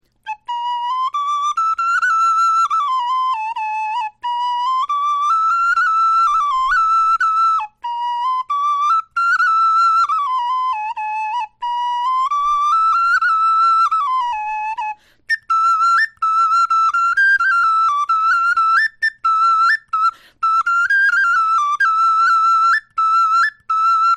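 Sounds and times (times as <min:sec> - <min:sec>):
bone flute melody: 0:00.2 - 0:24.1.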